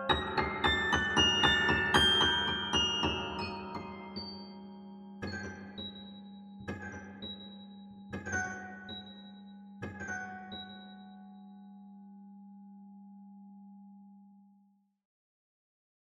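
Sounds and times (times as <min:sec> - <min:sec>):
grand piano: 0:00.0 - 0:04.7.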